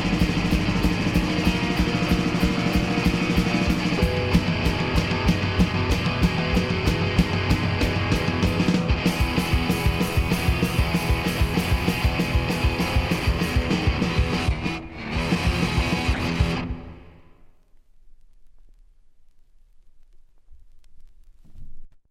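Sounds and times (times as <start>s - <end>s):
instrumental music: 0.0s - 17.2s.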